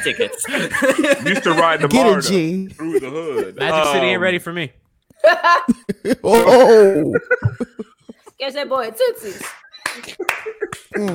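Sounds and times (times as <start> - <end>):
laughter: 0.0 - 4.2, 5.2 - 8.4, 9.7 - 11.1
speech: 0.0 - 11.1
hand claps: 9.4 - 11.1.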